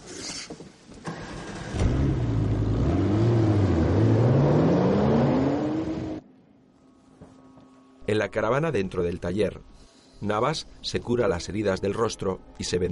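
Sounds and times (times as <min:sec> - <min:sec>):
car engine starting and revving as the car pulls away: 0:01.0 - 0:06.2
speech: 0:08.1 - 0:12.8.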